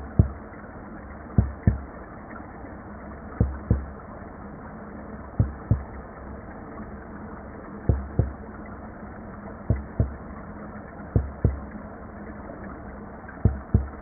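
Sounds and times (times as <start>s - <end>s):
Umbrina cirrosa shi drum fish low frequency pulse: 0.0s - 0.5s, 1.3s - 1.9s, 3.4s - 3.9s, 5.4s - 6.0s, 7.9s - 8.4s, 9.7s - 10.2s, 11.2s - 11.7s, 13.4s - 14.0s.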